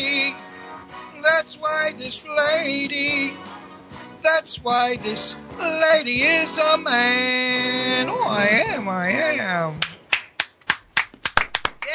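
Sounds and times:
speech: 0:01.4 - 0:03.6, 0:04.2 - 0:09.9
hand clapping: 0:09.8 - 0:11.9.

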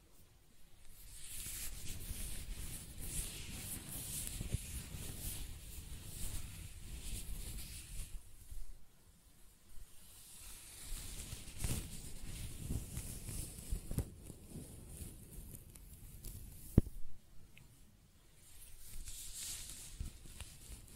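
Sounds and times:
hair being brushed and stroked: 0:00.8 - 0:08.8, 0:09.8 - 0:17.1, 0:18.4 - 0:20.9.

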